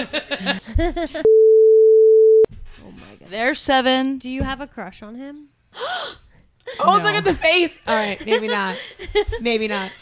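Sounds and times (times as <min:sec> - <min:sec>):
speech: 0:00.0 - 0:01.5, 0:03.3 - 0:09.9
censor beep: 0:01.3 - 0:02.5.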